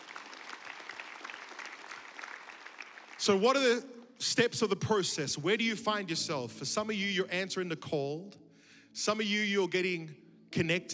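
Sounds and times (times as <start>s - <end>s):
crowd clapping hands: 0.0s - 3.7s
speech: 3.2s - 10.9s.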